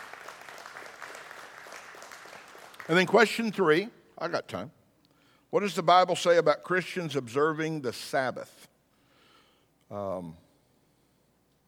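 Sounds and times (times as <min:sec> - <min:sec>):
church congregation hand clap: 0:00.0 - 0:03.8
speech: 0:02.9 - 0:04.8, 0:05.5 - 0:08.7, 0:09.9 - 0:10.4.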